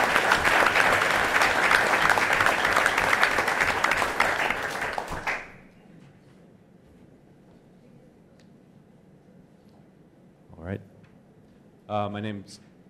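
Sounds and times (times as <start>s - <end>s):
audience applause: 0.0s - 5.6s
speech: 11.9s - 12.7s.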